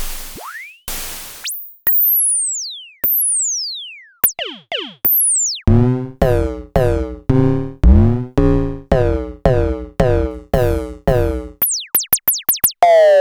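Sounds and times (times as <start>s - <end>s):
Klone Dual Percussion Synthesiser: 4.2s - 13.1s.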